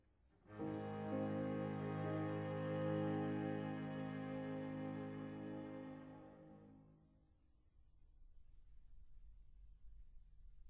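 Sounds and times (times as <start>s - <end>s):
piano trio movement: 0.5s - 6.8s.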